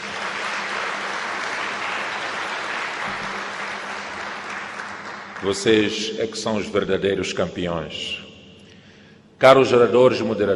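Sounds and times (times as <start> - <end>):
audience applause: 0.0 - 6.0
speech: 5.4 - 8.2, 9.4 - 10.5.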